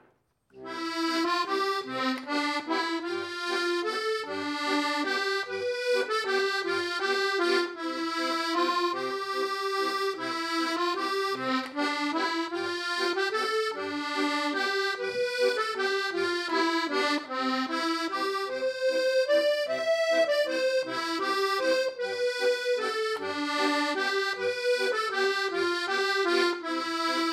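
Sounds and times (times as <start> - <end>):
waltz music: 0.6 - 27.3.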